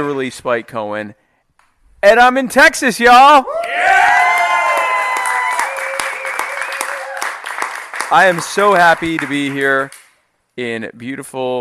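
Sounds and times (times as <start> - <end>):
speech: 0.0 - 1.2, 2.0 - 3.7, 8.1 - 10.0, 10.6 - 11.5
audience clapping at a political rally in Brenham, Texas: 3.6 - 10.2.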